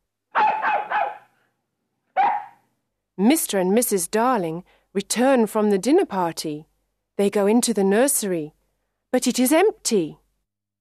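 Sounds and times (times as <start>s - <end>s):
dog barking in the garden: 0.3s - 1.4s, 2.2s - 2.6s
speech: 3.2s - 10.2s.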